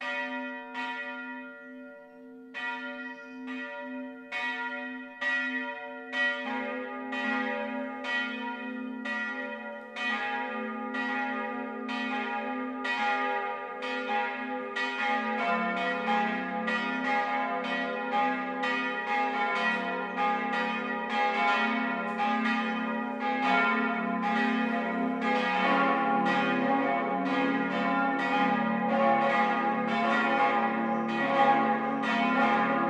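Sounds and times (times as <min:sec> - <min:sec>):
church bells pealing for the noon ringing: 0:00.0 - 0:32.8.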